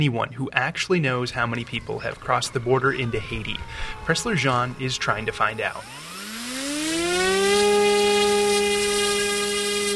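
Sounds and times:
speech: 0:00.0 - 0:06.1
small styrofoam drone launching and flying: 0:02.5 - 0:09.9.

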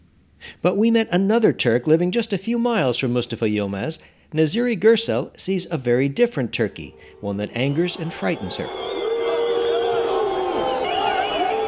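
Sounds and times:
speech: 0:00.6 - 0:08.9
protest crowd shouting: 0:06.7 - 0:11.6.

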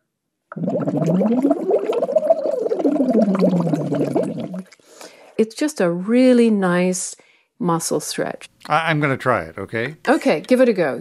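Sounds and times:
speech: 0:00.5 - 0:02.2, 0:05.4 - 0:11.0
voice humming a scale through a straw into water: 0:00.5 - 0:04.8.

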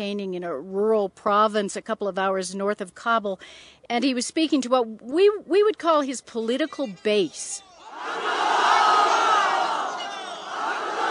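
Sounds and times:
speech: 0:00.0 - 0:08.4
rally crowd cheering: 0:07.4 - 0:11.0.

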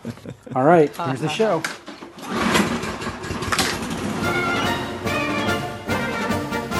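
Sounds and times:
speech: 0:00.0 - 0:01.8
lawn mower engine running: 0:01.9 - 0:06.7.

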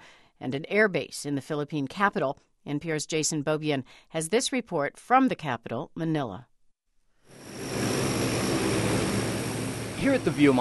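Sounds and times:
speech: 0:00.4 - 0:06.5, 0:10.0 - 0:10.5
C-130 transport aircraft engine roar at the Viomar Air Base: 0:07.3 - 0:10.5.

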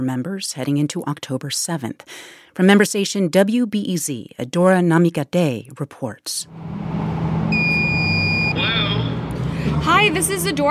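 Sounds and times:
speech: 0:00.0 - 0:07.4, 0:09.8 - 0:10.6
door entry buzzer: 0:07.5 - 0:08.7.

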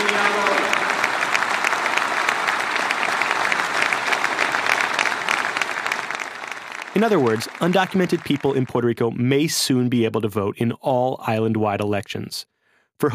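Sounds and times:
crowd cheering: 0:00.0 - 0:09.1
speech: 0:07.0 - 0:13.1.

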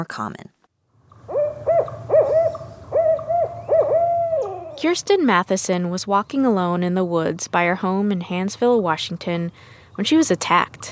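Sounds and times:
speech: 0:00.0 - 0:00.5, 0:04.8 - 0:10.9
owl hooting: 0:01.2 - 0:05.0.

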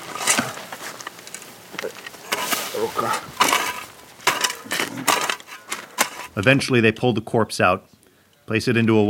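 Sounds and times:
stones clinking: 0:00.0 - 0:06.4
shovels digging into gravelly earth: 0:00.0 - 0:06.6
speech: 0:02.8 - 0:03.4, 0:06.4 - 0:07.9, 0:08.5 - 0:09.0.

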